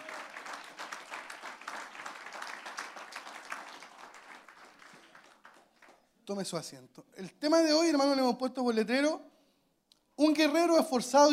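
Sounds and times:
audience applause: 0.0s - 6.0s
speech: 6.3s - 9.3s, 10.2s - 11.3s.

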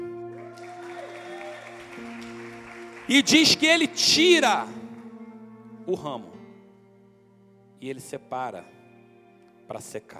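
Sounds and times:
audience applause: 0.3s - 4.0s
speech: 3.1s - 4.8s, 5.9s - 6.4s, 7.8s - 8.8s, 9.7s - 10.1s.

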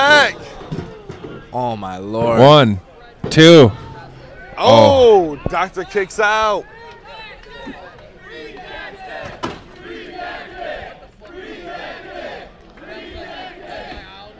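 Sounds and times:
wrestling crowd cheering and roaring: 0.0s - 14.3s
speech: 1.5s - 3.8s, 4.6s - 6.7s
sharp bang: 3.2s - 5.6s.

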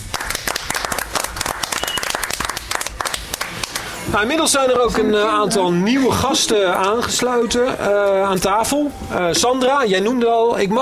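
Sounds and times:
audience applause: 0.0s - 4.0s
speech: 4.1s - 10.8s.

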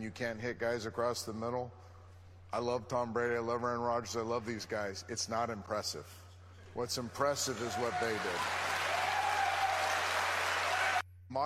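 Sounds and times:
speech: 0.0s - 1.9s, 2.5s - 6.2s, 6.8s - 8.6s
two people clapping: 7.5s - 11.0s.

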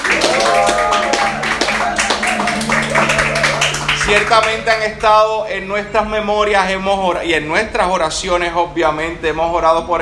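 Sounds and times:
applause and cheering: 0.0s - 4.9s
speech: 4.1s - 10.0s.

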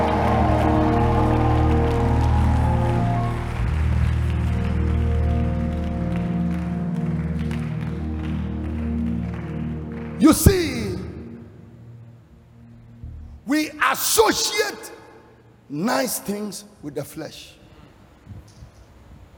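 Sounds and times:
audience screaming: 0.0s - 4.6s
audience clapping hands: 0.0s - 11.4s
speech: 10.2s - 10.6s, 15.7s - 17.6s.

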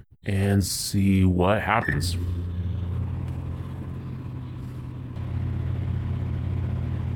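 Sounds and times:
speech: 0.2s - 2.5s
microwave oven running: 2.1s - 7.1s.

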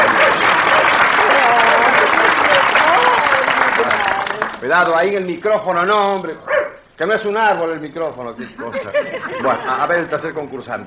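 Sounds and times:
audience applause: 0.0s - 4.6s
speech: 4.7s - 10.8s
laughter: 8.4s - 10.1s.

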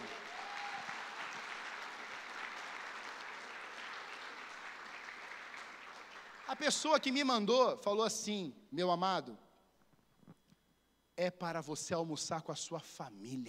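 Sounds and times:
audience applause: 0.0s - 6.9s
speech: 6.5s - 9.4s, 11.2s - 13.4s.

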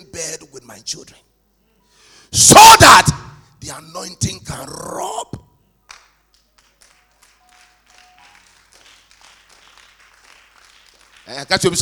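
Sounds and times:
speech: 0.7s - 1.3s, 2.3s - 5.3s, 11.3s - 11.7s
crowd clapping in scattered handclaps: 5.9s - 11.5s.

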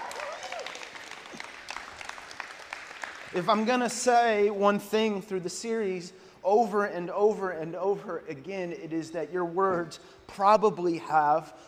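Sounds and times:
audience applause welcoming online viewers and people at an outdoor venue: 0.0s - 3.4s
speech: 3.3s - 11.6s.

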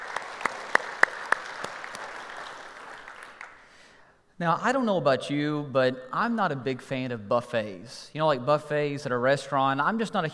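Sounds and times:
church congregation applauding to welcome another campus: 0.0s - 3.9s
speech: 4.4s - 10.3s.

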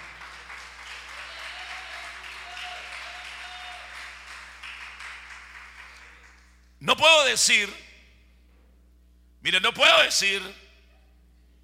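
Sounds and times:
audience applause: 0.0s - 6.5s
speech: 6.8s - 7.8s, 9.4s - 10.6s.

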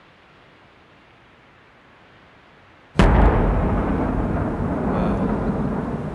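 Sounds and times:
basketball bursting with a bang after a drop from a great height: 3.0s - 6.1s
dense rushing noise: 3.0s - 6.1s.

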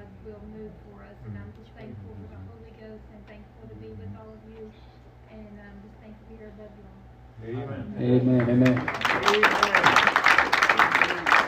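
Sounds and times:
speech: 0.3s - 10.2s
audience hand clapping: 8.2s - 11.4s.

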